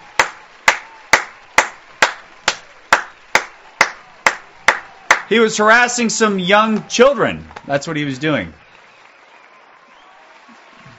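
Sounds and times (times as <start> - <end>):
single claps: 0.0 - 5.3
speech: 5.3 - 8.6.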